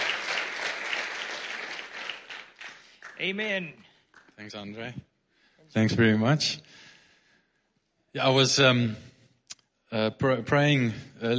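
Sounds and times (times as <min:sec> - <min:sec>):
audience at a church service applauding to welcome a speaker: 0:00.0 - 0:04.3
speech: 0:03.2 - 0:05.1, 0:05.7 - 0:06.8, 0:08.1 - 0:09.1, 0:09.9 - 0:11.3.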